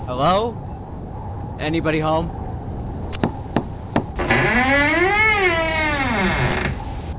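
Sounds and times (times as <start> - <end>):
speech: 0.2 - 0.7, 1.6 - 2.4
door creaking open: 4.2 - 7.0.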